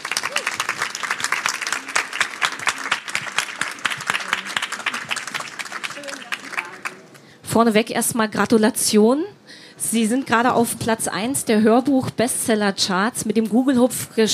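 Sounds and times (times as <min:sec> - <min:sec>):
audience applause: 0:00.0 - 0:07.3
speech: 0:07.6 - 0:14.3.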